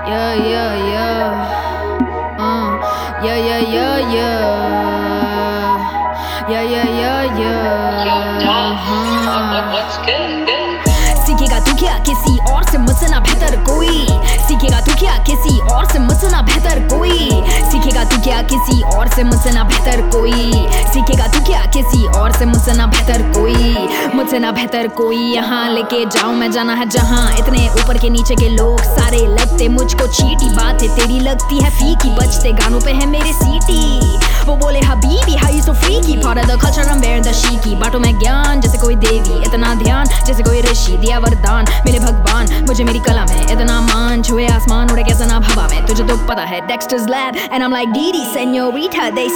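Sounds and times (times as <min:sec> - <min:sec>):
rap battle rapping: 0:00.1 - 0:49.3.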